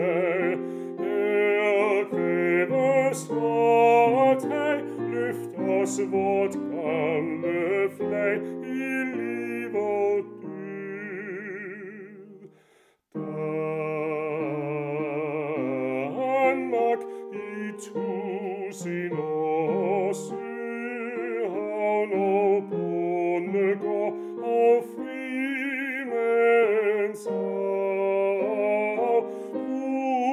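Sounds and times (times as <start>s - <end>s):
tenor singing a hymn: 0.0s - 12.6s, 13.2s - 30.3s.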